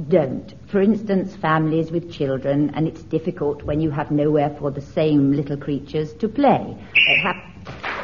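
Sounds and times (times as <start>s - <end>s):
speech: 0.0s - 7.9s
whistle blown to end the round: 6.9s - 7.6s.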